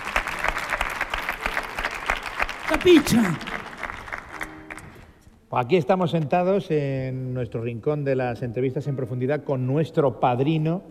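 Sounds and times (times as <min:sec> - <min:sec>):
audience applause: 0:00.0 - 0:05.2
speech: 0:02.7 - 0:03.5, 0:05.5 - 0:10.8.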